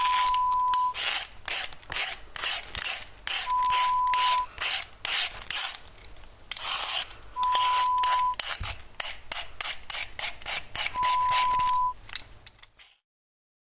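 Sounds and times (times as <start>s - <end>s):
peeling vegetables: 0.0s - 13.0s.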